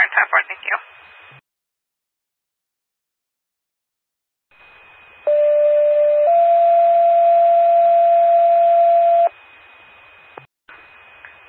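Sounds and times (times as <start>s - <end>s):
speech: 0.1s - 1.3s
911 paging system test tones: 5.3s - 9.3s.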